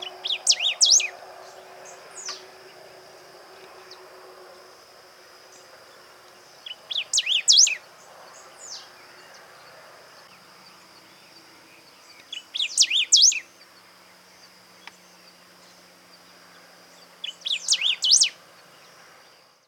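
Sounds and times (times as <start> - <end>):
Lined seedeater calling: 0.0 - 2.9, 6.5 - 7.8, 12.2 - 13.5, 17.2 - 18.4.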